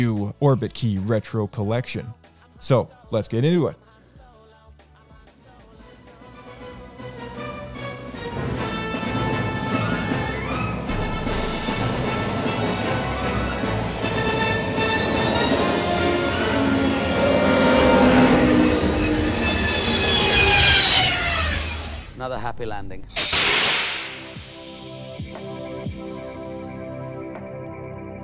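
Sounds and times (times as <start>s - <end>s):
speech: 0.0s - 3.9s
mechanical rumble of Starlight Beacon space station ambience: 8.0s - 24.4s
high sliding squeals: 8.2s - 22.2s
tonal hums: 8.3s - 22.2s.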